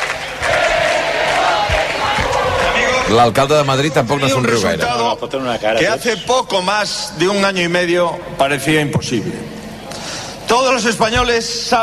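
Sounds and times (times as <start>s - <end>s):
large crowd chanting a political slogan: 0.0s - 3.2s
speech: 3.1s - 9.6s, 10.5s - 11.8s.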